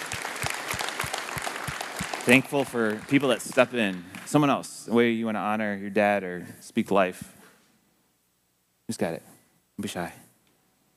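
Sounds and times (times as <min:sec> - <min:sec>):
audience applause: 0:00.0 - 0:04.7
speech: 0:02.3 - 0:07.4, 0:08.9 - 0:10.2.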